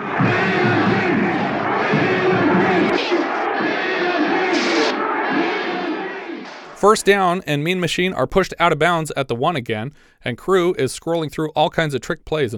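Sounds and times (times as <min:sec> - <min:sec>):
sharp shouts: 0:00.0 - 0:06.6
large stadium crowd chanting: 0:00.0 - 0:07.0
speech: 0:06.8 - 0:12.5.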